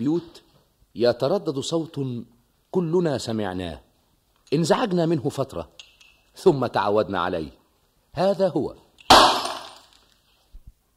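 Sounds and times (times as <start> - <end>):
speech: 0.0 - 0.4, 1.0 - 3.9, 4.5 - 7.6, 8.2 - 8.8
glass cup shattering in an old radio comedy program: 9.1 - 10.1.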